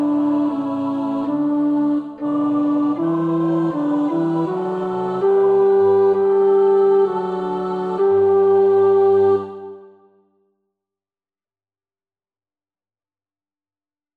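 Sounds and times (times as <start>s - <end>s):
tenor practising a choir part: 0.0s - 10.1s.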